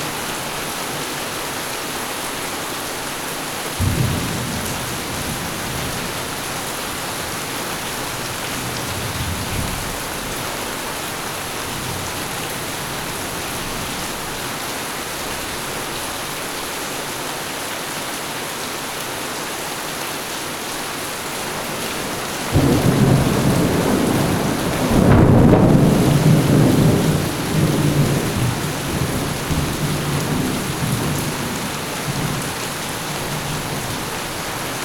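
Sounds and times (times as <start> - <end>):
steady downpour: 0.0 - 34.8
thunder: 3.8 - 6.3, 8.0 - 10.6, 22.3 - 32.5.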